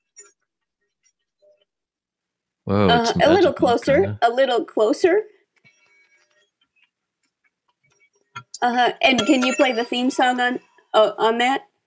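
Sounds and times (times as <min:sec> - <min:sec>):
speech: 0:02.7 - 0:05.3, 0:08.6 - 0:11.7
small bell ringing: 0:09.1 - 0:10.6.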